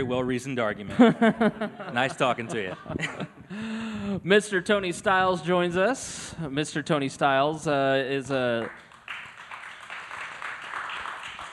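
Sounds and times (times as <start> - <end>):
speech: 0.0 - 8.9
laughter: 0.9 - 3.6
applause: 8.6 - 11.5.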